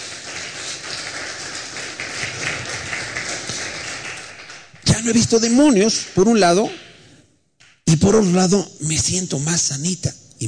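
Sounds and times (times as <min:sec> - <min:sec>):
crowd clapping: 0:00.0 - 0:07.0
speech: 0:05.0 - 0:06.8, 0:07.9 - 0:10.4.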